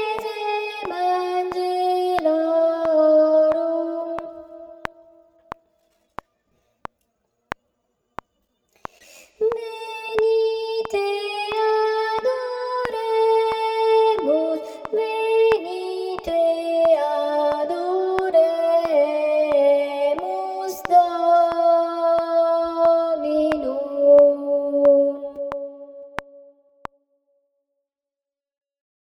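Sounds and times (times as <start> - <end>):
contralto voices singing: 0.0 - 5.2, 9.4 - 25.8.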